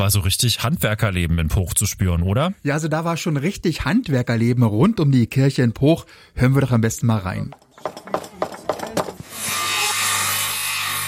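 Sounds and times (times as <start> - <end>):
speech: 0.0 - 8.1
hand saw cutting wood: 7.6 - 11.0.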